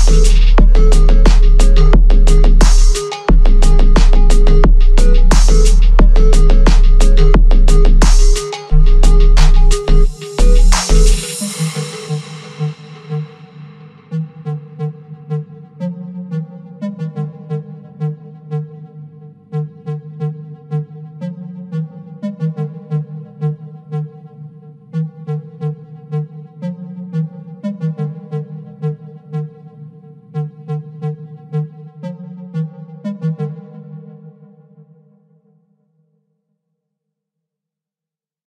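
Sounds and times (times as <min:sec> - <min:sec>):
37 Hz screwed low bass: 0:00.0 - 0:14.4.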